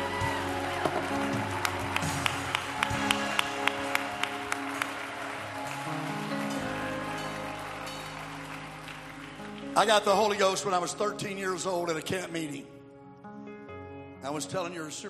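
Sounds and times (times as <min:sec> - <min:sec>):
audience clapping hands: 0:00.0 - 0:11.1
speech: 0:09.8 - 0:12.8, 0:14.2 - 0:15.0.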